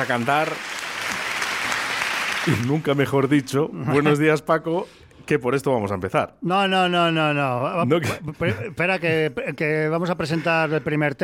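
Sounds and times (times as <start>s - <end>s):
speech: 0.0s - 0.7s, 2.4s - 11.2s
crowd applause: 0.0s - 3.0s.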